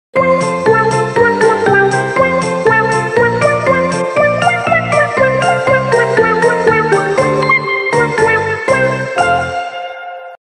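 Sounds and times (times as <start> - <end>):
intro music: 0.4 - 10.4.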